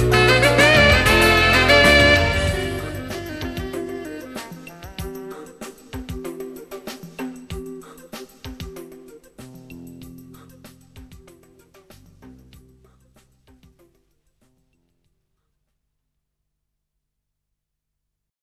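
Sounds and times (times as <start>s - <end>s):
Yamaha SY85 synthesizer: 0.0s - 14.1s.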